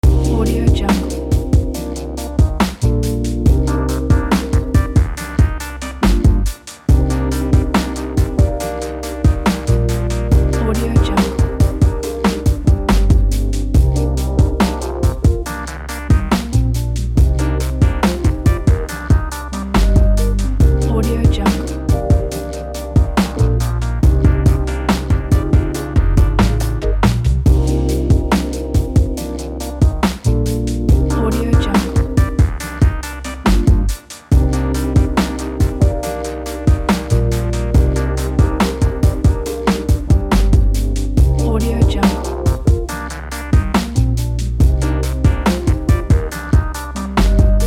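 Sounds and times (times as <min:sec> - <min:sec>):
lounge music loop: 0:00.0 - 0:47.6.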